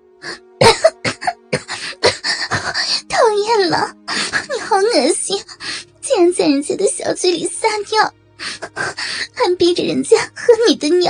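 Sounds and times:
speech: 0.2 - 0.5, 3.7 - 4.0, 4.7 - 8.2, 9.4 - 11.0
person coughing: 0.6 - 2.2.

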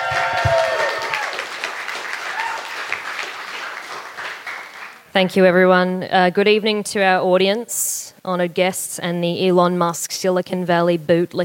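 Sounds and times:
comedy festival crowd clapping and cheering for a comedian: 0.0 - 5.1
speech: 5.2 - 11.4.

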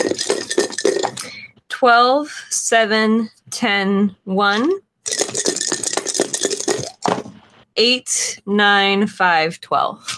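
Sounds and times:
dice rattling against a hard surface: 0.0 - 1.3, 5.1 - 7.4
speech: 1.8 - 5.5, 7.8 - 10.1.

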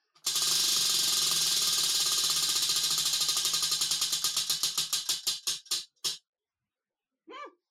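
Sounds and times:
game prize wheel pointer ratcheting off pegs: 0.2 - 6.2.

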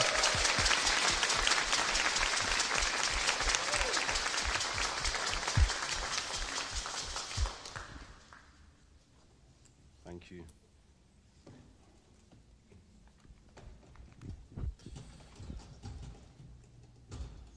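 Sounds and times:
low rhythmic thumping: 0.0 - 8.0
church congregation applause welcoming a preacher: 0.0 - 8.6.

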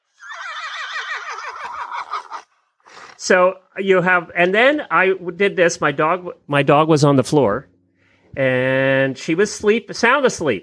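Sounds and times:
horse whinny played from a phone app: 0.0 - 3.1
speech: 1.2 - 2.4, 3.2 - 7.7, 8.3 - 10.6.

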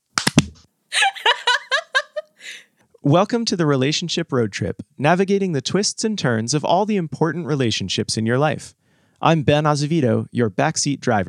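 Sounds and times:
hand clap on countdown: 0.1 - 0.7
laughter: 1.0 - 2.6
speech: 3.0 - 11.2.

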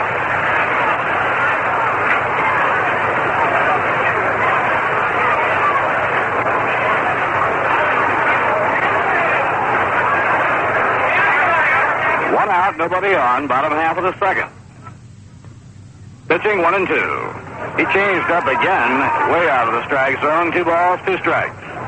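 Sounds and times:
ballpark crowd roaring and cheering: 0.0 - 13.0, 17.4 - 21.8
speech: 12.8 - 14.6, 16.4 - 17.2, 17.8 - 21.6.

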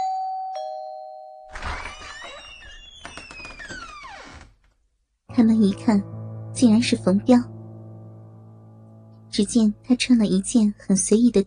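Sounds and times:
doorbell ringing: 0.0 - 1.5
speech: 5.4 - 7.5, 9.4 - 11.4.

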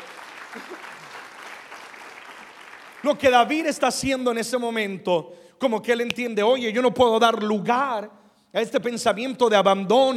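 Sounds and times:
audience applauding: 0.0 - 3.6
speech: 0.5 - 1.1, 3.0 - 10.1.

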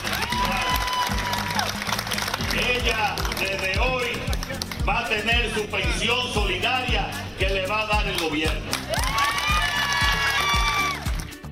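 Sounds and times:
faint voices and cheering: 0.0 - 3.5, 8.7 - 11.1
audience applause: 0.0 - 4.8, 8.7 - 11.4
speech: 4.8 - 8.8.

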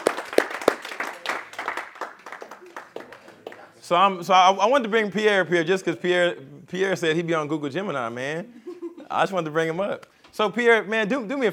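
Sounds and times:
audience clapping: 0.0 - 3.8
speech: 3.9 - 11.5.

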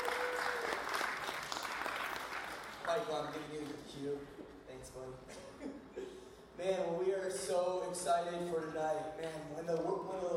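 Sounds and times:
audience clapping: 0.0 - 4.0
speech: 2.9 - 5.8, 6.6 - 10.3.

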